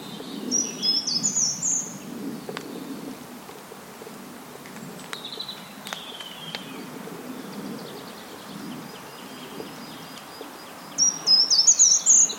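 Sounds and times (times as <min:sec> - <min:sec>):
treecreeper in gardens: 0:00.0 - 0:12.3.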